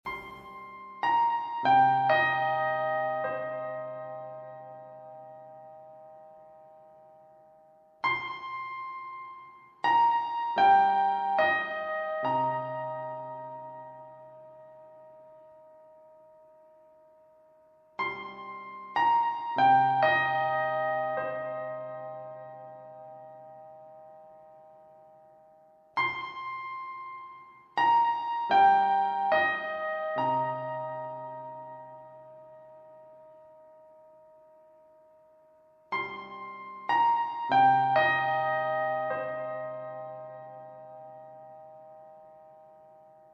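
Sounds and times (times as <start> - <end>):
piano: 0.0 - 43.3.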